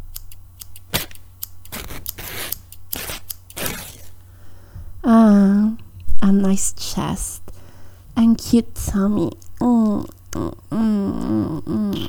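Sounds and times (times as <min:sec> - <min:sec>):
scissors cutting through clothing: 0:00.1 - 0:04.2
speech: 0:06.5 - 0:07.4, 0:08.2 - 0:12.0.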